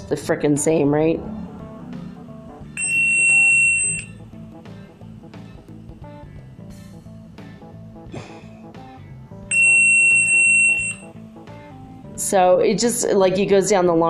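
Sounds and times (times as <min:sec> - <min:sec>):
speech: 0:00.1 - 0:01.5, 0:12.3 - 0:14.0
shrill high test frequency tones: 0:02.7 - 0:04.2, 0:09.5 - 0:11.1.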